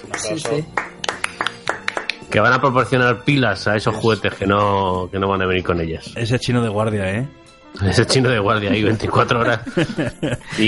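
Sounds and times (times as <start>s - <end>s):
speech: 0.0s - 0.9s, 2.3s - 10.6s
applause: 0.0s - 2.4s
laughter: 7.9s - 10.6s.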